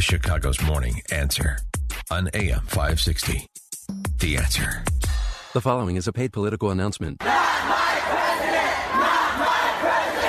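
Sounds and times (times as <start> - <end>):
speech: 0.0 - 7.8
protest crowd shouting: 7.2 - 10.2.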